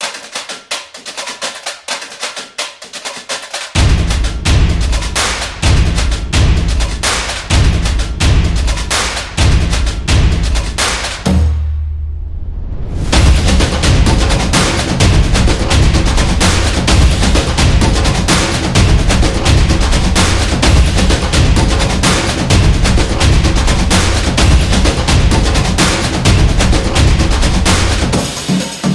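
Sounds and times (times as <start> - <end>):
samba percussion: 0.0 - 11.8, 13.0 - 28.9.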